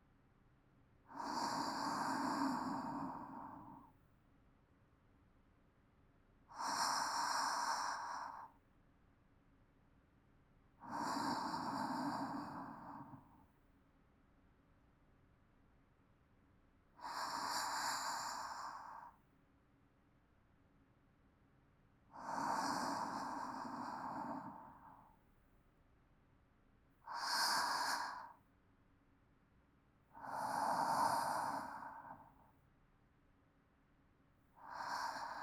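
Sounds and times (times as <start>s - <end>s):
calm sleep breathing: 1.1s - 4.0s, 6.5s - 8.6s, 10.8s - 13.6s, 17.0s - 19.3s, 22.1s - 25.2s, 27.1s - 28.4s, 30.1s - 32.6s, 34.6s - 35.4s.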